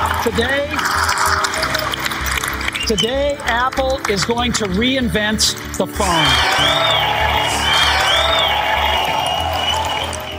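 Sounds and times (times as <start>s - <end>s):
large crowd applauding and cheering after keynote announcement: 0.0s - 10.3s
speech: 0.2s - 1.1s, 2.9s - 7.6s.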